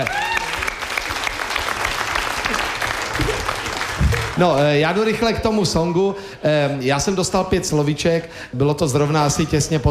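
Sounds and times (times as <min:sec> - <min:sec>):
audience applause: 0:00.0 - 0:04.8
speech: 0:04.4 - 0:09.8.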